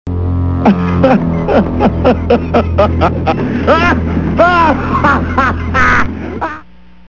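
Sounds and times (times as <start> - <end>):
maniac laugh: 0.6 - 6.7.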